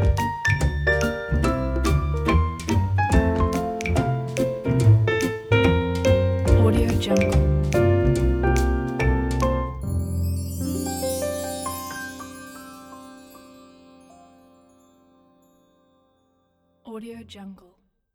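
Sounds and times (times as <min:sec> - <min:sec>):
jazz trio playing: 0:00.0 - 0:12.6.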